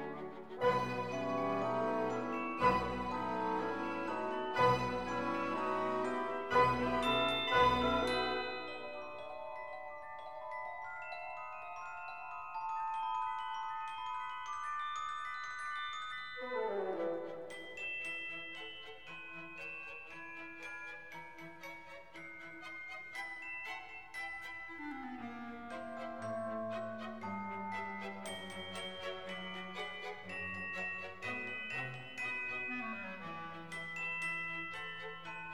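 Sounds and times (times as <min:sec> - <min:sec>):
cosy instrumental music for the New Year: 0:00.0 - 0:35.5.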